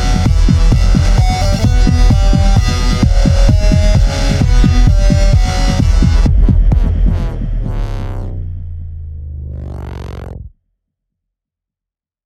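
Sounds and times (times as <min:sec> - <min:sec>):
morning rock music: 0:00.0 - 0:08.7.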